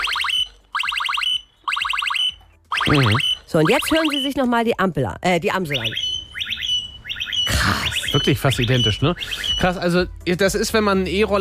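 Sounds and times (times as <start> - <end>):
e-scooter anti-theft alarm: 0.0 - 4.4, 5.6 - 9.8
speech: 2.9 - 6.1, 8.2 - 11.3.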